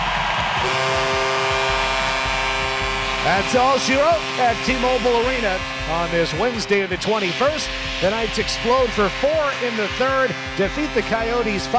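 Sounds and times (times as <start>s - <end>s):
crowd cheering: 0.0s - 11.7s
arena horn signalling end of game: 0.6s - 11.7s
speech: 3.3s - 11.7s.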